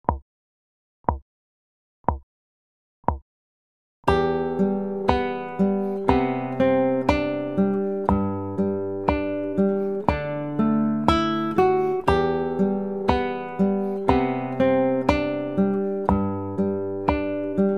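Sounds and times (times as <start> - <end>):
picked melody: 4.1 - 17.7.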